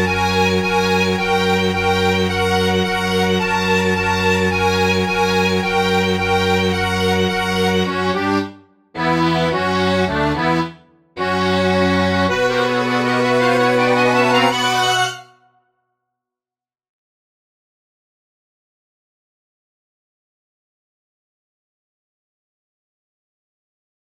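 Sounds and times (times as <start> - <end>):
tango music: 0.0 - 15.4.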